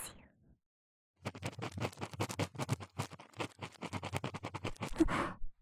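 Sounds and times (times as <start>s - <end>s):
fast shallow ear cleaning in the right ear: 1.2s - 5.2s.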